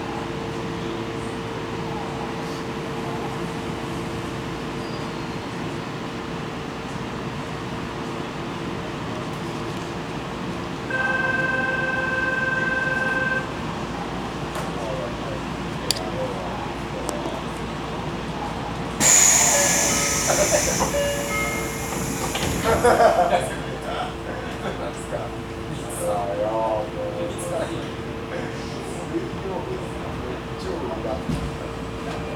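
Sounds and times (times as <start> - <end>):
Tokyo Metro Chiyoda Line train departing: 0.0 - 32.3
loud hiss of released air: 19.0 - 23.2
laughter: 22.3 - 25.0.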